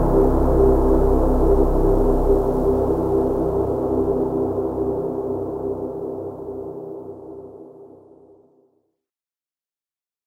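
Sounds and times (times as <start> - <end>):
drone in C minor: 0.0 - 8.2.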